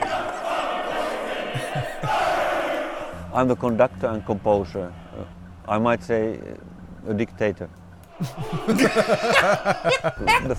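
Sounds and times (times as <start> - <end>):
laughter: 0.0 - 5.4, 7.1 - 10.5
male shouting choir bellowing: 0.0 - 10.5
speech: 3.4 - 10.5.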